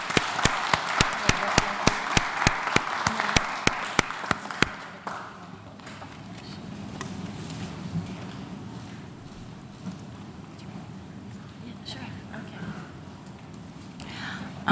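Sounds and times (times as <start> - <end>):
audience applause: 0.0 - 5.5.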